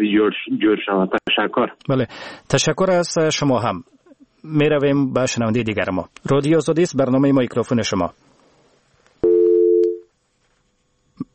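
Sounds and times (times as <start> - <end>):
speech: 0.0 - 8.3
steady telephone busy tone after a cut-off call: 9.2 - 10.1.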